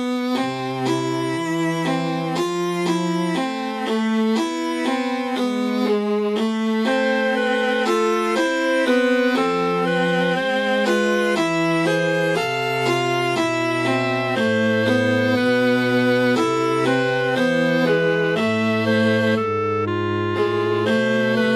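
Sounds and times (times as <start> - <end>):
ragtime trio music: 0.1 - 21.5.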